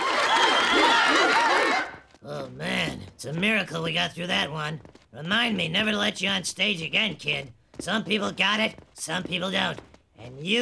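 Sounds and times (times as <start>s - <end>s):
crowd applause: 0.0s - 2.0s
speech: 2.3s - 10.6s.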